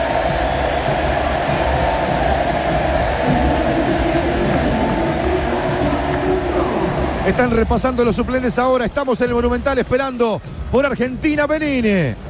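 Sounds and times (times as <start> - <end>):
stadium crowd chanting: 0.0 - 7.8
huge stadium crowd roaring: 0.0 - 9.9
speech: 7.3 - 12.2.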